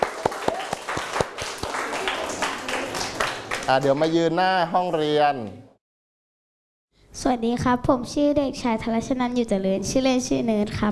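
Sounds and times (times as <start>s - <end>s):
classroom clapping: 0.0s - 4.1s
speech: 3.7s - 5.6s, 7.2s - 10.9s.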